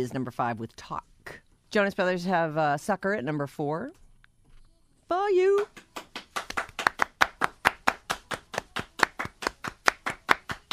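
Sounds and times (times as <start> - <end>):
speech: 0.0 - 4.0, 5.1 - 5.9
hand claps in a pop song: 5.5 - 10.7.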